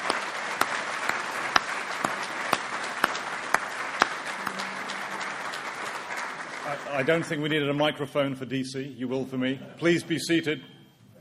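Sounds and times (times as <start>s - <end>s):
audience applause: 0.0s - 7.8s
speech: 6.9s - 10.7s.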